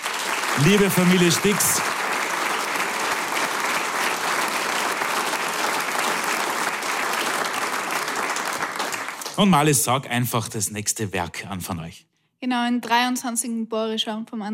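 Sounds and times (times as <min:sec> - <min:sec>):
audience applause: 0:00.0 - 0:10.2
speech: 0:00.6 - 0:01.9, 0:09.4 - 0:14.5.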